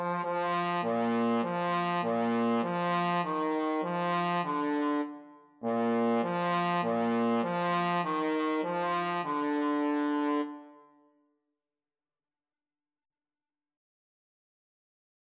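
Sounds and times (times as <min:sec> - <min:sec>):
trombone duet: 0:00.0 - 0:10.5.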